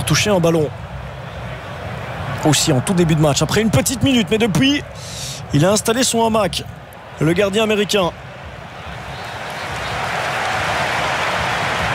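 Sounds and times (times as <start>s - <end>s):
large stadium crowd applauding: 0.0s - 11.9s
speech: 0.1s - 0.8s, 2.4s - 8.2s.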